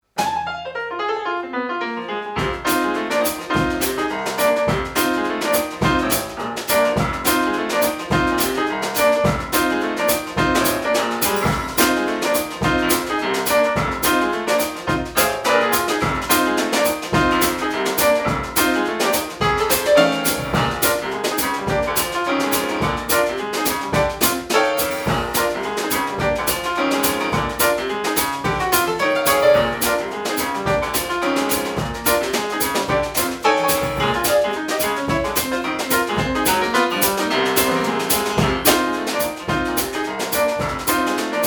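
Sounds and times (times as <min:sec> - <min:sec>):
woman playing piano: 0:00.0 - 0:41.4.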